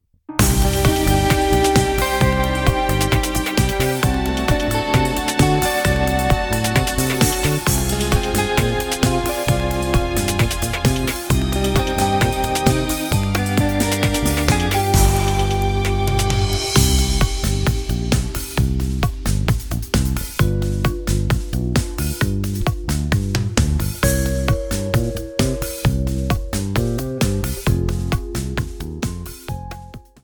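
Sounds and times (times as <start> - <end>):
bachatango backing music: 0.4 - 30.2.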